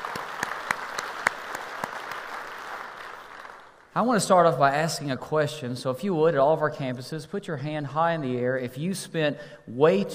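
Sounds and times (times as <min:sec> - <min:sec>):
church congregation at the North Garnett campus clapping: 0:00.0 - 0:04.5
speech: 0:04.0 - 0:10.1.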